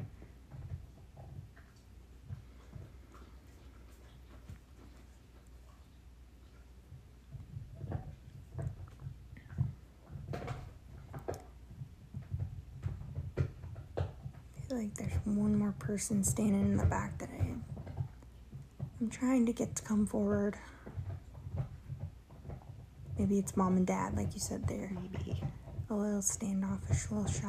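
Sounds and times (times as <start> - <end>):
dog chewing: 0.0 - 14.5, 20.2 - 25.9
speech: 14.8 - 17.7, 19.0 - 20.8, 23.2 - 27.4.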